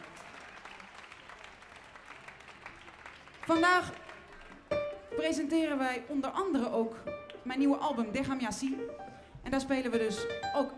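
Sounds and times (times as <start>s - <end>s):
audience applause: 0.0s - 4.8s
speech: 3.5s - 4.0s, 5.2s - 10.7s.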